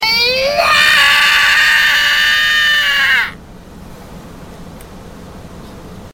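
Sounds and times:
person screaming: 0.0 - 3.4.

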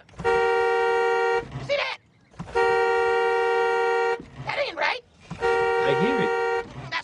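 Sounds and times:
horn honking: 0.1 - 1.7, 2.4 - 4.5, 5.3 - 6.9.

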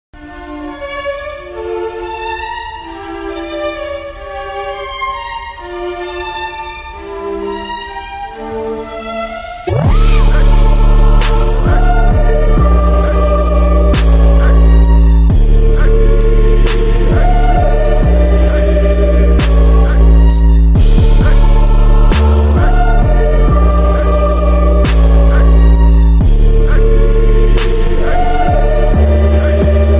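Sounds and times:
trap beat: 9.7 - 29.9.

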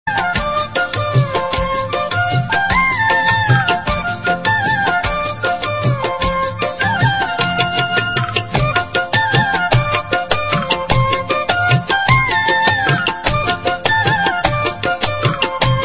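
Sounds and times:
Kumauni folk melody tone: 0.1 - 15.8.

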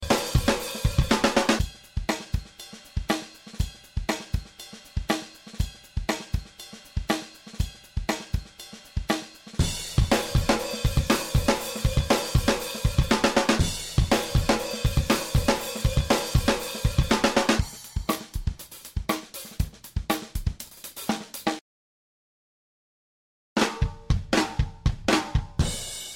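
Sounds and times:
drum: 0.0 - 21.6, 23.6 - 26.1.

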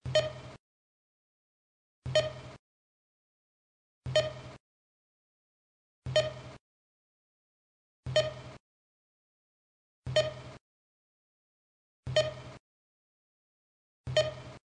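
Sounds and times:
beep: 0.1 - 0.4, 2.1 - 2.4, 4.1 - 4.4, 6.1 - 6.4, 8.1 - 8.5, 10.1 - 10.5, 12.1 - 12.5, 14.1 - 14.6.

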